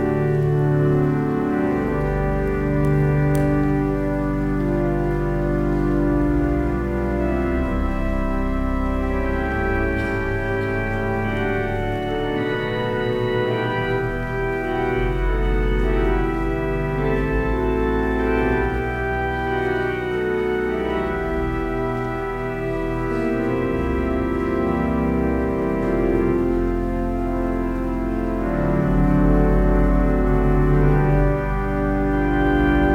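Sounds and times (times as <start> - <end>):
organ music: 0.0 - 32.9.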